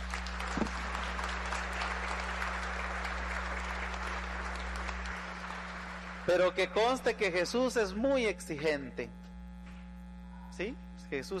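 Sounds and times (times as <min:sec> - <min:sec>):
audience applause: 0:00.0 - 0:07.4
speech: 0:06.3 - 0:09.2, 0:10.6 - 0:11.3.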